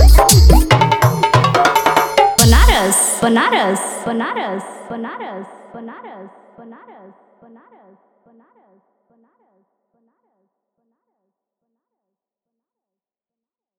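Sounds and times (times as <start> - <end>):
bass-heavy DJ remix song: 0.0 - 3.2.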